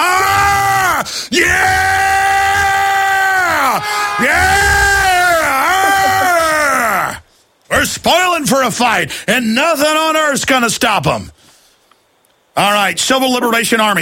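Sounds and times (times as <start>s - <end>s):
studio group shouting a war growl: 0.0s - 7.2s
speech: 1.3s - 1.7s, 8.0s - 11.4s, 12.6s - 14.0s.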